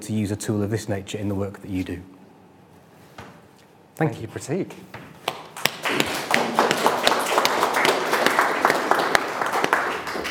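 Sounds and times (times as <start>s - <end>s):
speech: 0.0s - 2.2s, 4.0s - 5.0s
applause from a room full of people: 5.6s - 10.2s.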